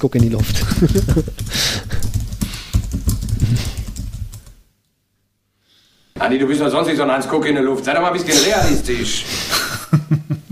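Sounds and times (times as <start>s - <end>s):
speech: 0.0s - 1.8s, 6.3s - 9.5s
typing on a computer keyboard: 0.0s - 4.6s
laughter: 0.4s - 2.0s.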